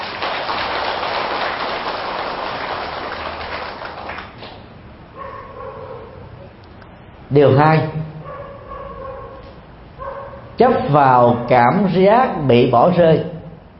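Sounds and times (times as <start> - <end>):
audience applause: 0.0 - 4.6
speech: 7.3 - 8.1, 10.6 - 13.3.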